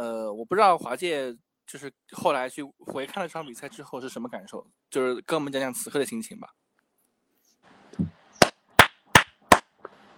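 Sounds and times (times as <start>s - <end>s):
speech: 0.0s - 6.6s
hand clapping: 8.8s - 9.7s.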